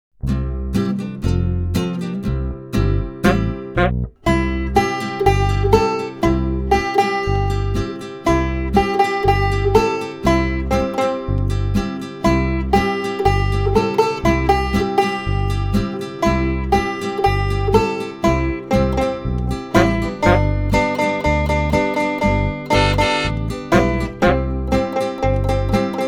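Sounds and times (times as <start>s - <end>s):
instrumental music without vocals: 0.2s - 26.0s.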